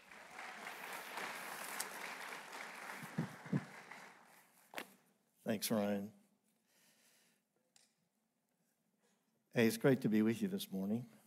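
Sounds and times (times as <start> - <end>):
church congregation applauding to welcome a speaker: 0.0 - 4.8
speech: 5.5 - 6.2, 9.6 - 11.2.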